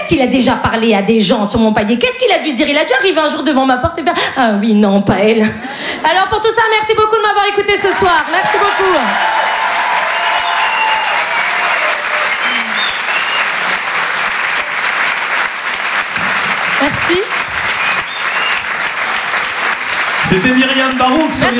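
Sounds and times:
speech: 0.1s - 9.6s, 20.3s - 21.5s
audience applause: 7.9s - 21.5s.

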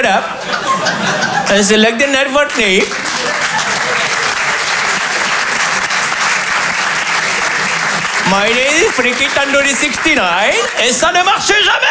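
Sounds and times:
speech: 0.0s - 3.4s, 8.3s - 11.9s
laughter: 0.0s - 11.8s
audience applauding: 2.4s - 11.4s.

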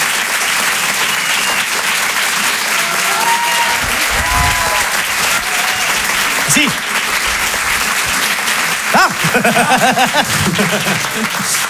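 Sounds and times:
comedy audience applause: 0.0s - 11.6s
laughter: 2.7s - 11.6s
speech: 9.4s - 11.6s.

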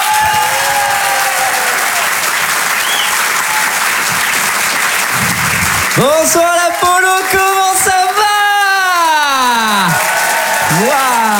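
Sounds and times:
faint audience cheers: 0.0s - 4.0s, 5.9s - 11.3s
stand-up comedy audience applauding a comedian coming on stage: 0.0s - 11.3s
speech: 6.0s - 8.0s.

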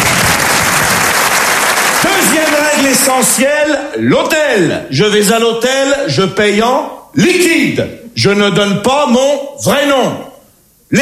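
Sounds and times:
applause: 0.0s - 3.2s
speech: 2.1s - 10.3s.

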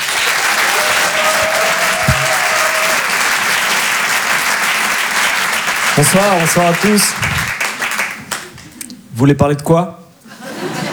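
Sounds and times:
audience clapping at the Rire et Chanson Comedy Club: 0.0s - 8.8s
low thump: 2.0s - 2.5s
speech: 6.0s - 7.4s, 9.2s - 10.0s
laughter: 10.2s - 10.9s.

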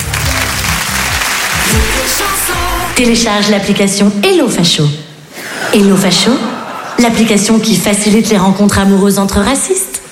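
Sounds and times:
audience applause: 0.0s - 3.0s
speech: 2.2s - 5.0s, 5.7s - 9.8s
laughter: 5.4s - 7.5s.

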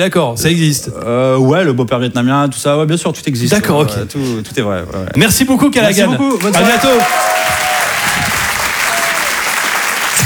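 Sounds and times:
speech: 0.0s - 7.5s
audience applause: 6.3s - 10.2s.

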